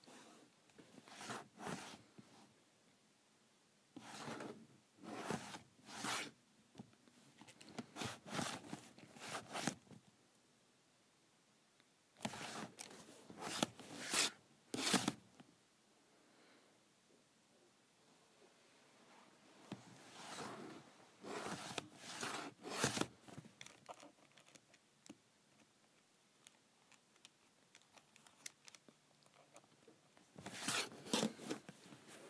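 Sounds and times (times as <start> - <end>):
calculator cover slid on and off: 0.9 - 2.0, 4.0 - 6.4, 7.7 - 9.8, 12.2 - 15.2, 19.7 - 23.4, 30.4 - 32.2.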